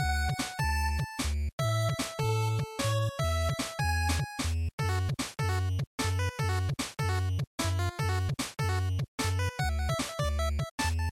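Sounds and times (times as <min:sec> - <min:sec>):
game background music loop: 0:00.0 - 0:11.1.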